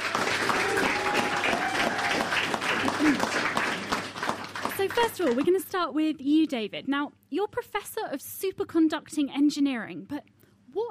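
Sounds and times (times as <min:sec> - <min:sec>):
audience applause: 0:00.0 - 0:05.5
speech: 0:04.9 - 0:10.8.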